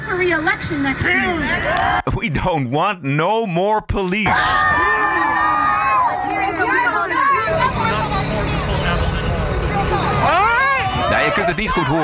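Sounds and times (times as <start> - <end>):
speech: 0.3 - 5.0, 11.3 - 12.0
large crowd booing and jeering the mayor: 4.1 - 8.4, 9.6 - 12.0
shouts: 4.2 - 7.9, 10.0 - 12.0
laughter: 11.1 - 12.0.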